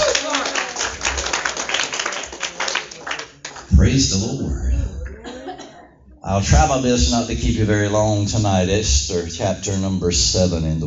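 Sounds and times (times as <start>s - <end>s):
audience clapping: 0.0s - 4.0s
speech: 3.8s - 4.7s, 6.3s - 10.8s
laughter: 4.2s - 6.1s.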